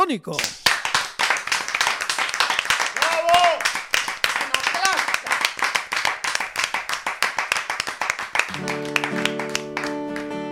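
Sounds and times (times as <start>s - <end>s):
speech: 0.0s - 0.6s
audience applause at a veterinary congress for a singer: 0.4s - 10.4s.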